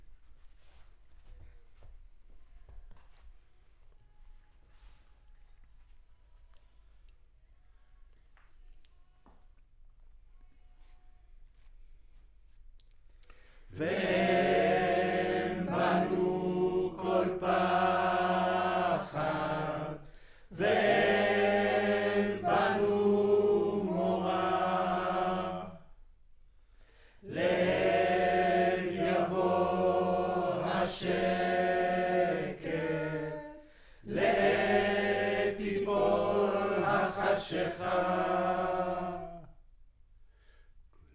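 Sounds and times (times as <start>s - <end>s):
choir recorded with center U47 microphone: 13.7s - 26.0s, 27.2s - 39.6s.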